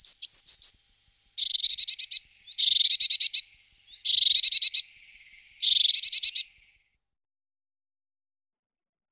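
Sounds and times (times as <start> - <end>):
blue tit calling: 0.0 - 6.5.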